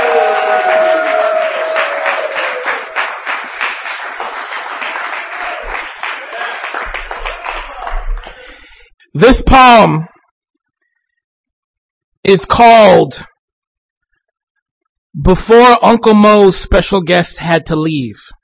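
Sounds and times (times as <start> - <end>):
audience applause welcoming the final poet at a reading: 0.0 - 8.7
speech: 9.2 - 10.1, 12.2 - 13.3, 15.2 - 18.4.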